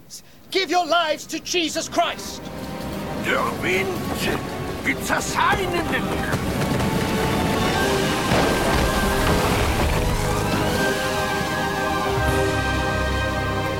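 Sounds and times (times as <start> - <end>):
speech: 0.1 - 2.5, 3.2 - 6.7
large oak tree crashing down with cracking and splintering wood: 2.9 - 13.0.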